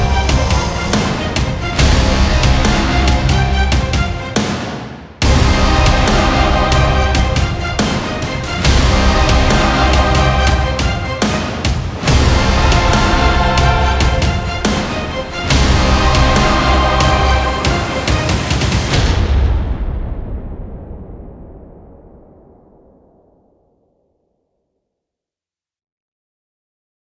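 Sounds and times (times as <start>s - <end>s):
intense action war trailer music: 0.0s - 22.6s.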